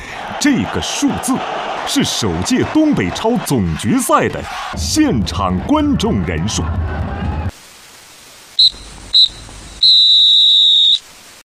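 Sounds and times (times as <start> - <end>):
speech: 0.4 - 7.2
steady hiss of noise: 7.5 - 11.4
referee's final whistle blasts: 8.6 - 11.0.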